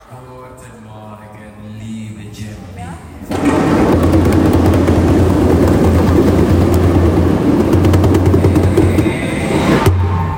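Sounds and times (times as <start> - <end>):
djembe playing: 4.0 - 9.9.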